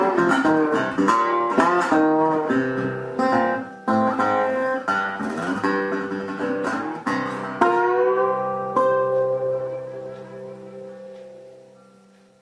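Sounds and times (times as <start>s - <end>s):
blues slide dobro guitar: 0.0s - 11.8s.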